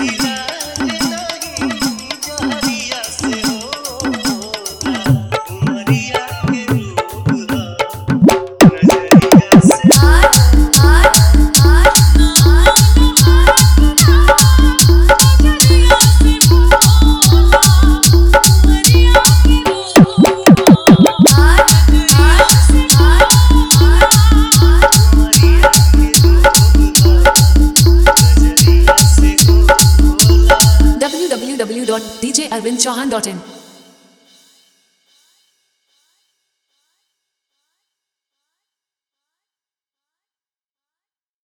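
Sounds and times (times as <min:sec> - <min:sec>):
hard jhan jhan bass dj song: 0:00.0 - 0:31.2.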